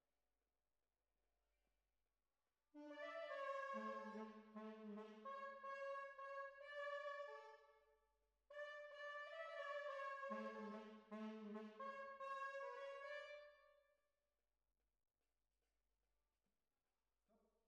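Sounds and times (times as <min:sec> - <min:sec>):
horns: 0:02.8 - 0:07.4, 0:08.6 - 0:13.6.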